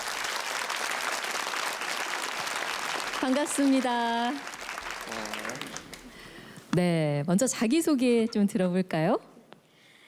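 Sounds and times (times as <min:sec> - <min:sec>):
audience applause: 0:00.0 - 0:06.8
speech: 0:03.2 - 0:05.9, 0:06.8 - 0:09.3.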